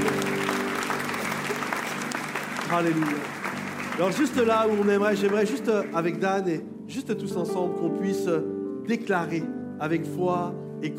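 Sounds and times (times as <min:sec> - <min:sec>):
audience applause: 0:00.0 - 0:06.4
speech: 0:02.7 - 0:03.4, 0:04.0 - 0:10.9.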